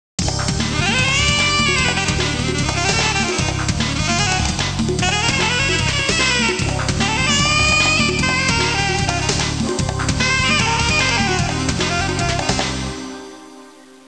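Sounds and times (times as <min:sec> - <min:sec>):
jazz music ringtone: 0:00.3 - 0:13.2.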